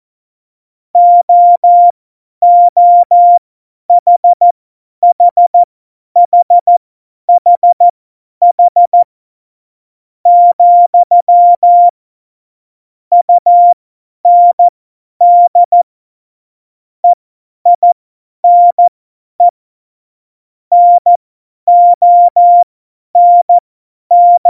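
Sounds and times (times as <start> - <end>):
CW morse code beeps: 1.0 - 3.4, 4.0 - 4.4, 5.0 - 6.8, 7.4 - 7.8, 8.5 - 9.1, 10.3 - 11.9, 13.1 - 15.8, 17.8 - 19.5, 20.7 - 24.4.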